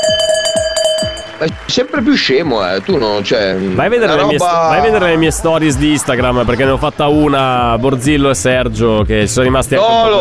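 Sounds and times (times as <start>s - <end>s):
bell ringing: 0.0s - 1.9s
speech: 1.4s - 10.1s
laughter: 1.5s - 8.3s.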